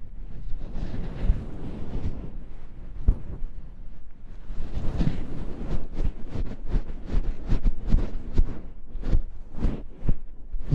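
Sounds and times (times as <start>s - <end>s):
soft fluffy rubbing and brushing over a microphone: 0.0s - 10.7s.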